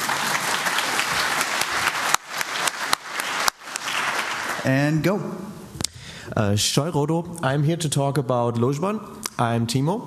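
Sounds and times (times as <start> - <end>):
audience applause: 0.0 - 4.8
speech: 4.6 - 5.6, 6.3 - 10.0.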